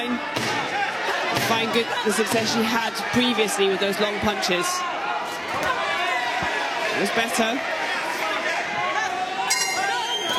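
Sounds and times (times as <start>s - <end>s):
steady crowd murmur: 0.0s - 10.3s
speech: 1.5s - 5.7s, 7.0s - 7.8s
boxing end-of-round metallic bell clanging: 9.5s - 10.0s.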